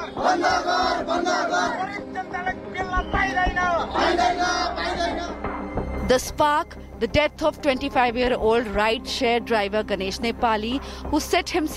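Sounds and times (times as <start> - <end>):
large crowd of protesters chanting slogans: 0.0 - 5.6
speech: 0.2 - 5.4, 6.1 - 11.7.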